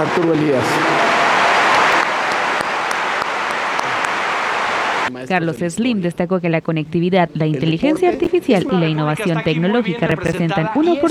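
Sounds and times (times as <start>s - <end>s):
speech: 0.0s - 0.9s, 5.2s - 11.0s
sustained applause from a sizable crowd: 0.0s - 5.1s.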